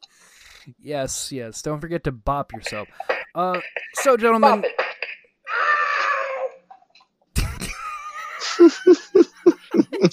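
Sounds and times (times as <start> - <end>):
speech: 0.6 - 4.8, 8.6 - 9.1
video game creature screaming in pain: 5.5 - 6.6
rhythmic stuttering yelps: 5.5 - 6.8
laughter: 7.4 - 10.1.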